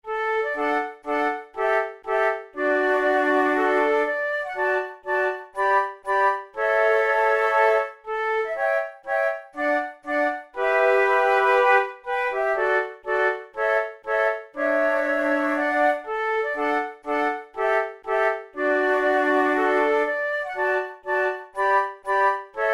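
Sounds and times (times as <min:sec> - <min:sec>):
andante trio flute tunes: 0:00.0 - 0:22.7.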